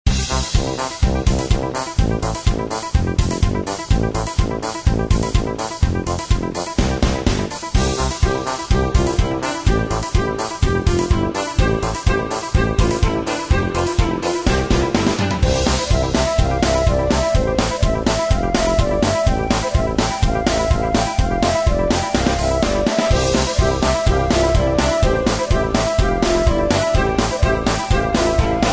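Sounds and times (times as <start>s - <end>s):
music: 0.0s - 28.7s.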